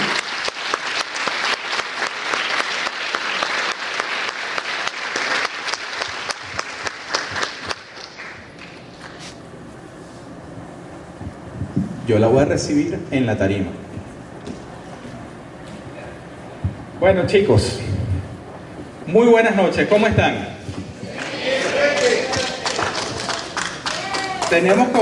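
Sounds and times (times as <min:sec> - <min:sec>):
audience applause: 0:00.0 - 0:09.2, 0:21.0 - 0:25.0
speech: 0:12.2 - 0:13.8, 0:17.0 - 0:18.0, 0:19.1 - 0:20.5, 0:24.5 - 0:25.0.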